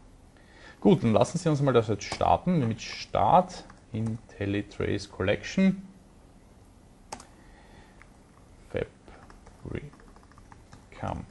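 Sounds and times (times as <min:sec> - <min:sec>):
faint low hiss: 0:00.0 - 0:11.2
speech: 0:00.8 - 0:05.9, 0:08.7 - 0:09.0, 0:09.6 - 0:10.0, 0:11.0 - 0:11.2
typing on a computer keyboard: 0:03.6 - 0:04.2, 0:07.1 - 0:07.3, 0:09.1 - 0:11.2.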